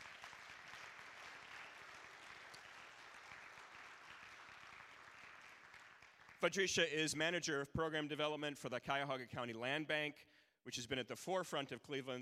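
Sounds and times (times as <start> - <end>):
audience applause: 0.0 - 6.4
speech: 6.4 - 12.2.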